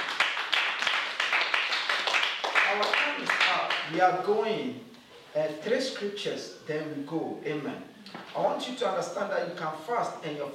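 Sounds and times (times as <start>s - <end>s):
audience clapping: 0.0s - 3.9s
speech: 2.8s - 10.5s.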